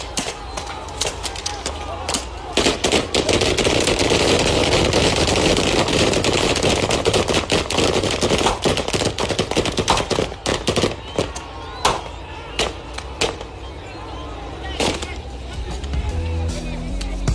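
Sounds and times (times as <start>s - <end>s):
people shouting: 0.0s - 6.0s, 8.5s - 17.2s
rapid sustained bursts of gunfire: 2.5s - 11.3s.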